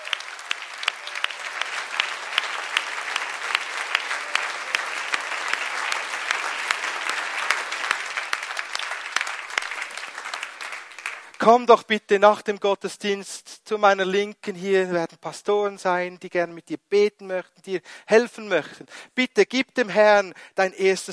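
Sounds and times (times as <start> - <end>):
audience clapping: 0.0 - 11.8
speech: 11.4 - 21.1.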